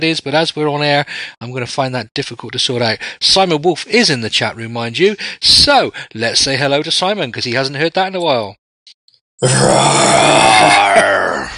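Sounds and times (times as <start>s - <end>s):
speech: 0.0s - 8.6s, 9.4s - 11.5s
deep guttural roaring over the telephone line: 9.4s - 11.5s.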